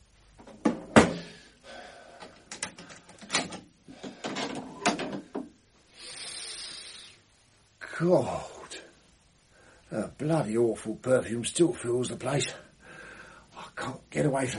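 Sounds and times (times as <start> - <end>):
wooden door clunks: 0.5 - 1.3
door creaking: 2.2 - 5.5
speech: 8.0 - 8.5, 9.9 - 12.6, 13.8 - 14.5.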